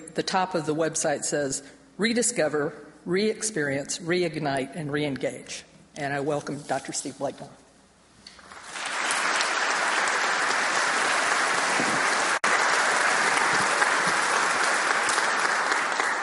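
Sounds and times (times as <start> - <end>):
speech: 0.2 - 7.6
audience applause: 8.4 - 16.2.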